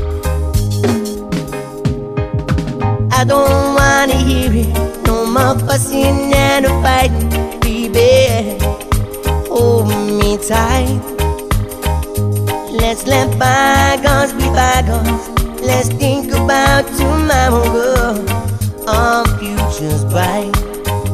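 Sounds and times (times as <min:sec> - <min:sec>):
reggae vocal music: 0:00.2 - 0:01.8, 0:02.9 - 0:21.1.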